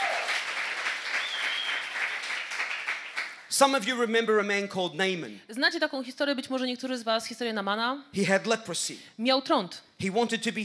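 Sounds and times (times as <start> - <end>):
audience applause: 0.0 - 3.5
speech: 3.6 - 10.6.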